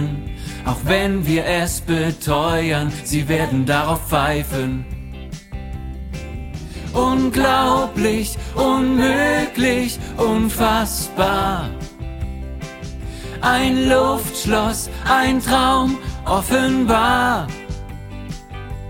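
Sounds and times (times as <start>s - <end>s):
tenor voice singing a learning part: 0.0s - 4.9s, 6.9s - 11.8s, 13.3s - 17.6s.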